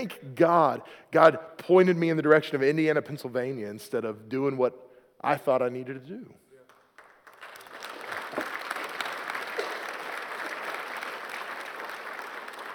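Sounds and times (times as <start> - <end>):
speech: 0.0 - 6.4
audience clapping: 6.6 - 12.7.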